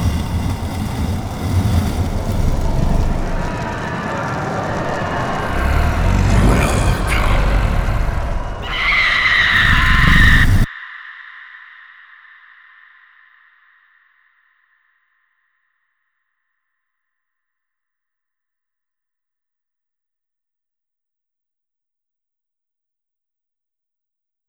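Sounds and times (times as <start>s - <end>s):
haunted fun house sound effects: 0.0s - 10.7s.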